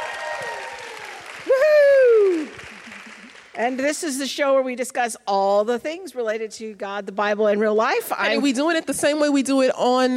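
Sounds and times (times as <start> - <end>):
audience applause: 0.0 - 3.6
speech: 3.6 - 10.1.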